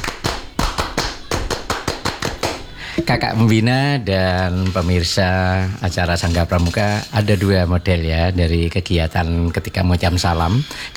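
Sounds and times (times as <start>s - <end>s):
rhythmic clapping of Indonesian scouts in East Java: 0.0s - 4.8s
speech: 3.0s - 10.9s.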